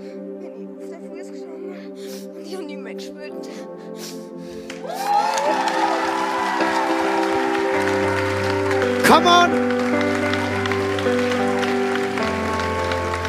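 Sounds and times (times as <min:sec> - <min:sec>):
crowd applause and cheering: 0:04.7 - 0:13.2
speech: 0:09.1 - 0:09.7.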